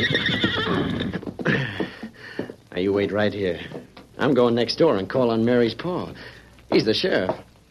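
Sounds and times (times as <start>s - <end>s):
horse neighing: 0.0s - 1.3s
speech: 2.8s - 7.5s.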